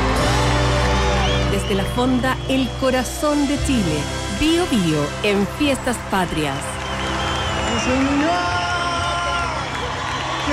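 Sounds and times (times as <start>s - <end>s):
audience applause: 0.0s - 3.4s, 5.3s - 10.5s
rising whoop: 0.4s - 1.5s, 6.8s - 10.5s
speech: 1.7s - 7.1s, 7.8s - 8.7s.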